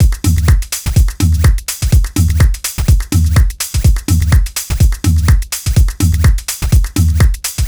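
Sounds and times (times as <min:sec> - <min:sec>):
lounge house music loop: 0:00.0 - 0:07.6.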